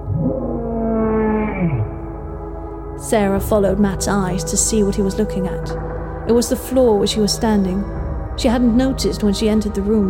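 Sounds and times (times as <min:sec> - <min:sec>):
monster howling beyond a door: 0:00.1 - 0:02.0
speech: 0:03.0 - 0:10.0.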